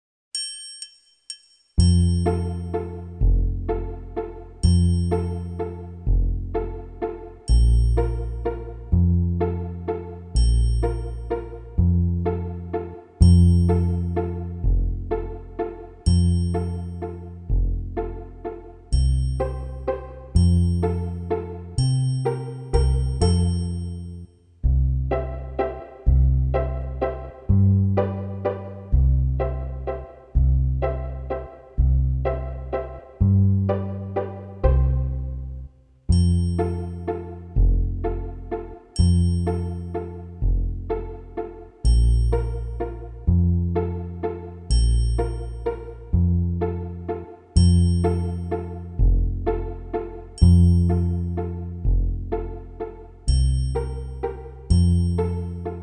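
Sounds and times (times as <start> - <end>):
allegro piece in F major: 0.4 - 24.3, 24.9 - 55.8.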